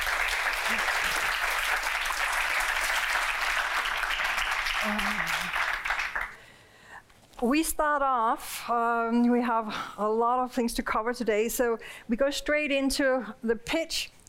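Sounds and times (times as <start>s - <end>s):
audience applause welcoming a discussion panel: 0.0s - 6.4s
speech: 7.4s - 14.2s.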